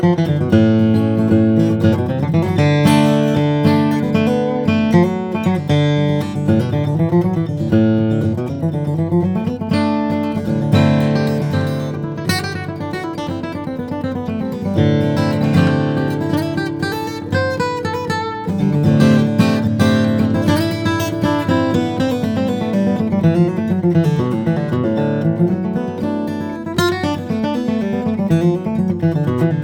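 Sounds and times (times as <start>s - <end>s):
dreadnought steel-string flattop guitar of Brazilian rosewood and Carpathian spruce: 0.0s - 29.6s.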